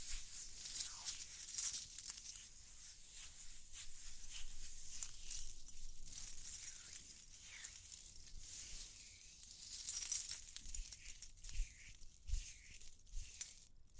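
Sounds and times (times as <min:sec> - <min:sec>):
soft scratching: 0:00.0 - 0:13.7
light jingling: 0:00.4 - 0:02.6, 0:04.2 - 0:13.9.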